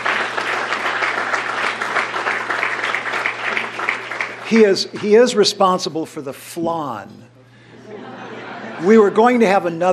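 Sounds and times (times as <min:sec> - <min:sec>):
audience applause at a dinner gathering: 0:00.0 - 0:05.4
speech: 0:04.5 - 0:07.3, 0:08.8 - 0:09.9
laughter: 0:07.5 - 0:09.8.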